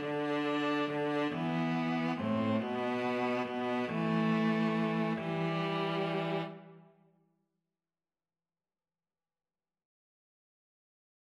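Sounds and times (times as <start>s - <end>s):
string trio playing: 0.0s - 6.7s.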